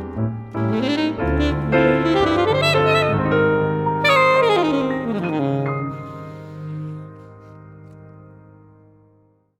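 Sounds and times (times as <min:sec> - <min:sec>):
saxophone: 0:00.5 - 0:08.0.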